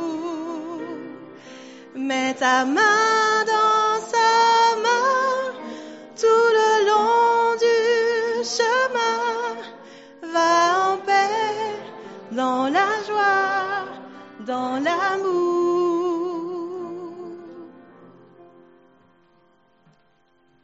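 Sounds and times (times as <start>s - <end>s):
chanting: 1.9s - 17.8s.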